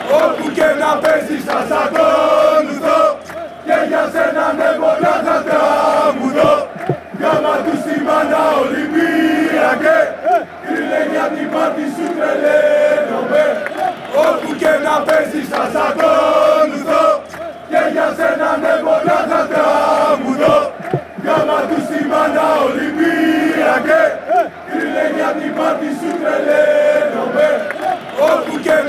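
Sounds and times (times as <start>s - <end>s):
fans chanting: 0.0s - 28.8s.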